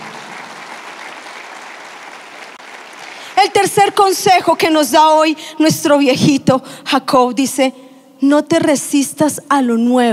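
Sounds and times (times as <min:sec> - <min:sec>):
audience applause: 0:00.0 - 0:04.6
speech: 0:03.4 - 0:10.1.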